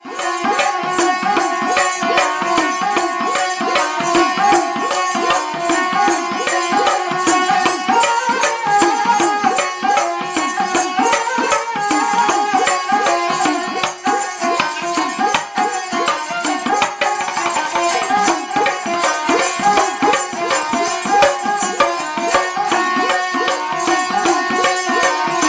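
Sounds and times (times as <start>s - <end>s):
Punjabi sarangi: 0.0s - 25.4s.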